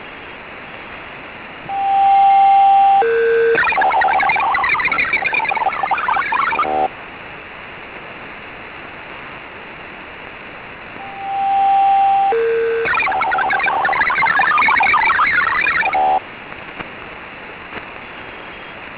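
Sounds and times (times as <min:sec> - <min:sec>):
MFSK-16 data tones: 0:01.7 - 0:06.9, 0:11.0 - 0:16.2.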